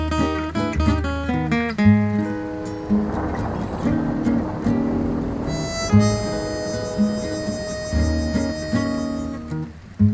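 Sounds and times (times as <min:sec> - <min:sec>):
rough tracking mix of music: 0:00.2 - 0:10.0.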